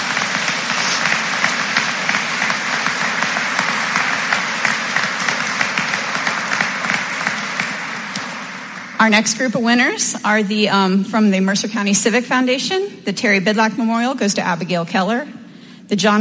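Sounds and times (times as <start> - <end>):
round of applause: 0.0 - 9.0
speech: 9.0 - 16.1.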